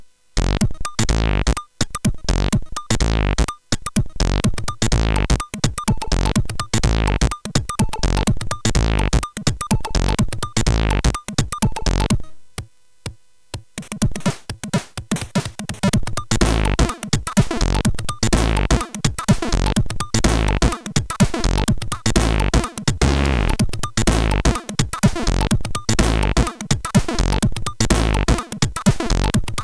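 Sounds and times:
funk music: 0:00.6 - 0:12.3, 0:13.7 - 0:29.6.

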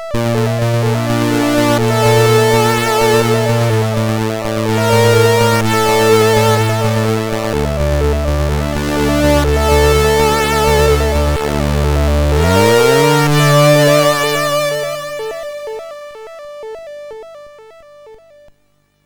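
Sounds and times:
SID MOS6581R4 sound chip intro music: 0:00.1 - 0:16.0.

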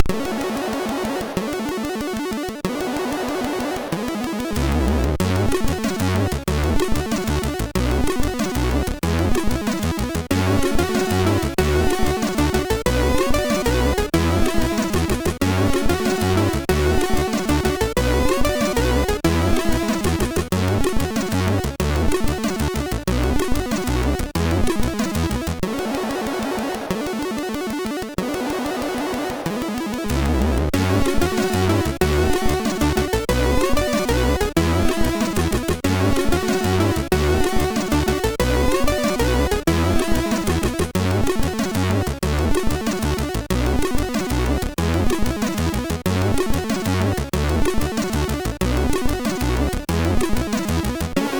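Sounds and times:
MOS6581R3 SID chip slowdown: 0:00.0 - 0:51.3.

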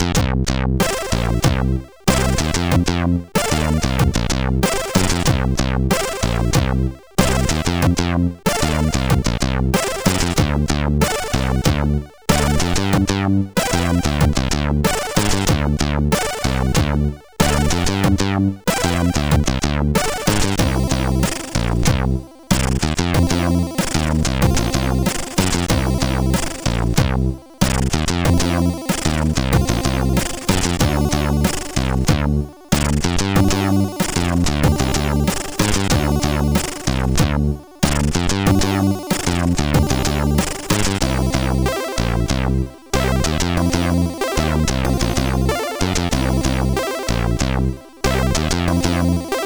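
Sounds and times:
slow beat on SID CSG8580R5 chip: 0:00.2 - 0:49.4.

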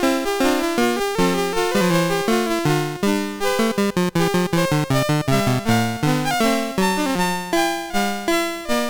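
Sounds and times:
fugue played on MOS6581R2 SID chip: 0:00.2 - 0:08.7.

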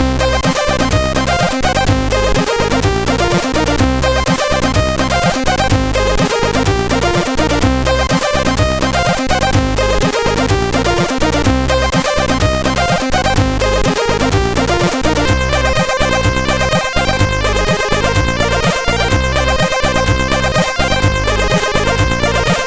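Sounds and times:
short rave beat: 0:00.0 - 0:22.6.

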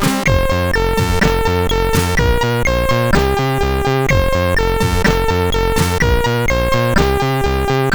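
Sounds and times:
news intro music: 0:00.2 - 0:07.9.

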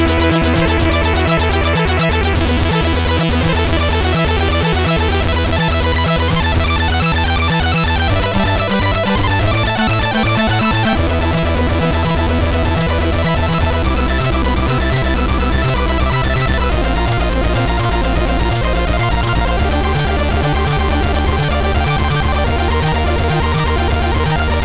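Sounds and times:
synth bass from a CSG8580R5 SID chip: 0:00.0 - 0:24.6.

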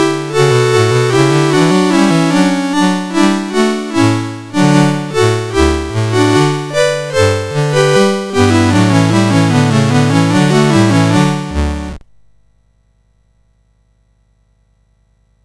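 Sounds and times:
chorale on a SID 8580R5 sound chip: 0:00.0 - 0:12.0.

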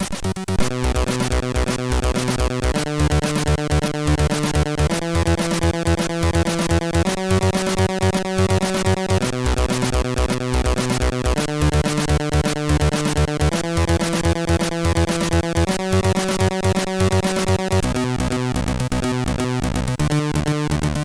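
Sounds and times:
MOS6581 SID chip synth sound: 0:00.2 - 0:21.0.

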